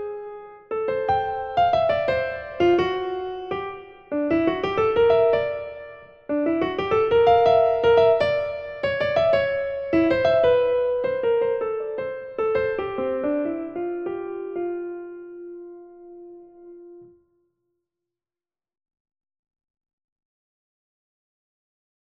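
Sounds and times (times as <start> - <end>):
fast lyrical waltz melody played with the right hand: 0.8 - 17.0.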